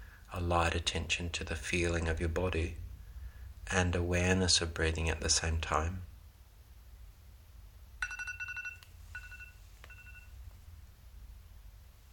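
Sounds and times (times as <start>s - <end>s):
speech: 0.3s - 2.8s, 3.7s - 6.1s
timer alarm going off: 8.0s - 10.3s.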